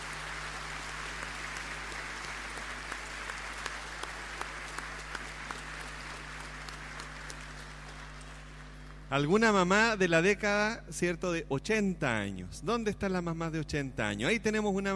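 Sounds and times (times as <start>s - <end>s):
audience applause: 0.0s - 9.1s
speech: 9.1s - 14.9s.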